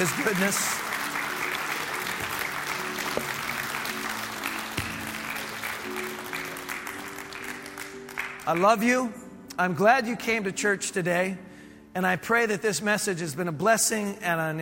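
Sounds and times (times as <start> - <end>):
speech: 0.0 - 0.8, 8.5 - 14.5
audience clapping: 0.0 - 8.9.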